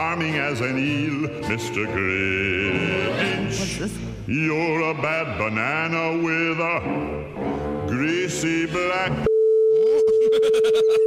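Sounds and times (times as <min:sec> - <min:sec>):
speech: 0:00.1 - 0:09.3, 0:10.4 - 0:11.0
long censorship beep: 0:09.2 - 0:11.0.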